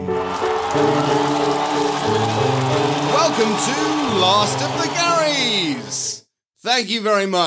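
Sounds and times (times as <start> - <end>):
steady harmonically rich music: 0.2 - 6.1
pre-recorded cheering crowd: 0.2 - 6.2
speech: 6.8 - 7.4.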